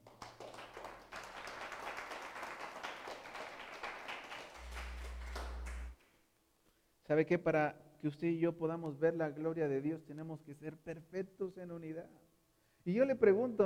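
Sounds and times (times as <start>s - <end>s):
crowd clapping: 0.0s - 6.0s
low sustained organ-like hum: 4.6s - 6.0s
speech: 7.1s - 12.2s, 12.8s - 13.6s.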